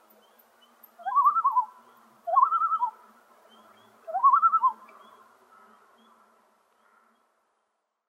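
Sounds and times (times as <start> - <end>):
common loon calling tremolo phrases: 0.2 - 6.2.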